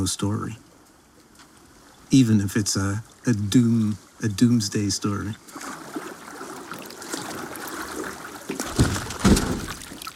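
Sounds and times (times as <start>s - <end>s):
speech: 0.0s - 0.7s, 2.1s - 5.7s
water churning and trickling from capsizing boat: 1.6s - 10.1s
heavy splashes of boat capsizing into water: 5.3s - 10.1s.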